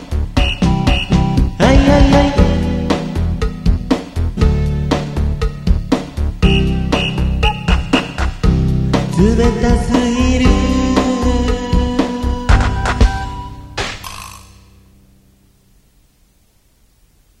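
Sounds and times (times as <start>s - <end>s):
karaoke singing: 0.0s - 5.5s, 6.4s - 13.6s.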